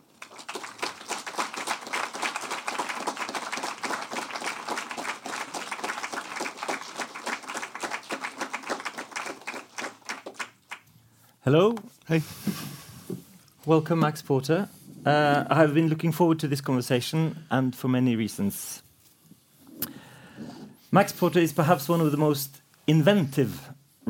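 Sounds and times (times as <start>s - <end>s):
audience applause welcoming two authors on stage at a literary event: 0.0s - 10.8s
speech: 11.5s - 12.8s, 13.6s - 18.8s, 21.0s - 24.0s.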